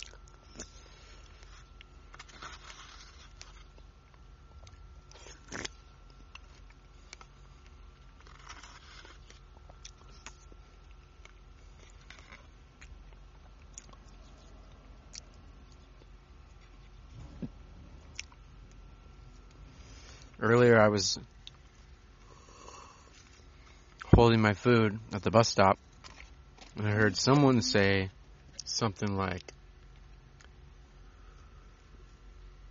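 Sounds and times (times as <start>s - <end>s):
someone biting into and chewing strawberries: 0.0s - 20.4s, 21.2s - 24.1s, 25.7s - 27.6s
low steady hum: 0.0s - 32.6s
speech: 20.4s - 21.3s, 24.2s - 25.9s, 26.8s - 29.6s.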